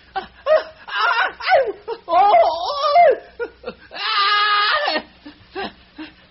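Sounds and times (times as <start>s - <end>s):
choked sobbing: 0.0s - 6.2s
prisoners' high-pitched screams and wails of pain: 0.5s - 3.3s, 3.9s - 5.1s.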